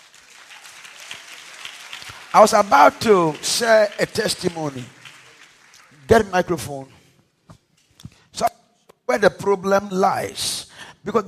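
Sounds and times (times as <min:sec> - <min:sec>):
crowd clapping: 0:00.0 - 0:07.1
speech: 0:02.3 - 0:05.0, 0:06.1 - 0:07.0, 0:09.1 - 0:11.2.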